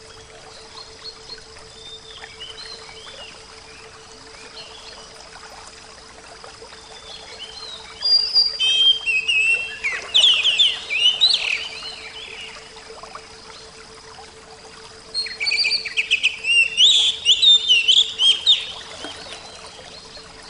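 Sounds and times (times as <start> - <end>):
Oriental magpie-robin song: 0.1 - 5.1, 6.8 - 12.7, 15.1 - 20.4.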